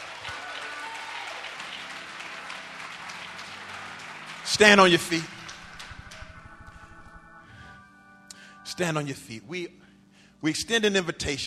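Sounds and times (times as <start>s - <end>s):
audience clapping hands: 0.0s - 6.9s
speech: 4.5s - 5.4s, 8.8s - 9.8s, 10.4s - 11.4s.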